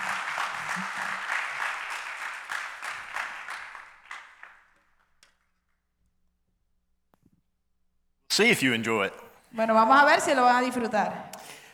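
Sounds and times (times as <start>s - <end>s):
audience applauding: 0.0s - 5.4s
speech: 8.4s - 11.3s.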